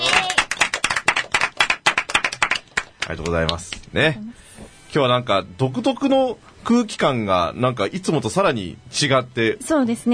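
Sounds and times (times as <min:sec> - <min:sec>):
small studio audience applause: 0:00.0 - 0:03.9
speech: 0:03.1 - 0:10.1.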